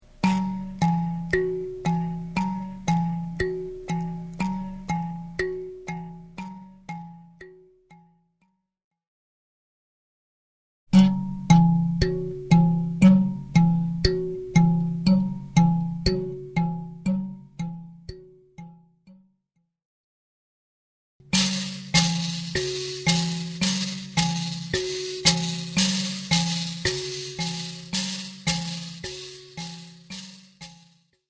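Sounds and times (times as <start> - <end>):
mbira: 0.0 - 7.7, 11.0 - 18.4, 21.2 - 31.1.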